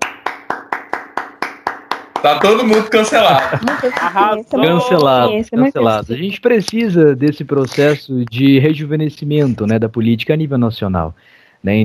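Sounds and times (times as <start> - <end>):
clapping: 0.0 - 4.2
speech: 2.2 - 11.8
laughter: 2.4 - 5.0.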